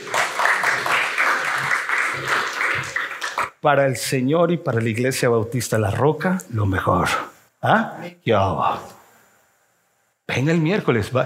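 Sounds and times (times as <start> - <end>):
audience applause: 0.0 - 3.6
speech: 3.6 - 8.9, 10.3 - 11.2.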